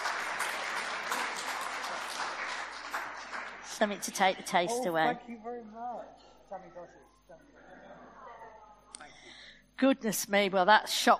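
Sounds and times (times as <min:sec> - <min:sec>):
audience applause: 0:00.0 - 0:05.0
speech: 0:03.8 - 0:07.7, 0:09.8 - 0:11.1.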